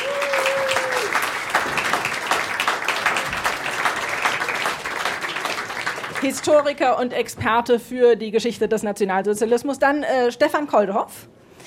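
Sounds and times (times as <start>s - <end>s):
audience applause: 0.0s - 6.7s
speech: 6.2s - 11.4s.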